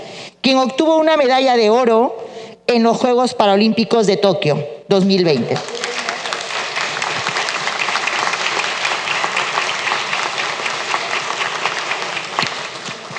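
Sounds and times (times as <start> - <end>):
speech: 0.4 - 5.8
audience applause: 5.6 - 13.1.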